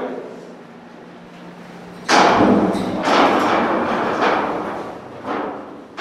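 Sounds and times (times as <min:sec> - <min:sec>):
steady low hum: 0:00.6 - 0:06.0
heavy corroded metal door grinding open in a missile silo: 0:01.5 - 0:06.0.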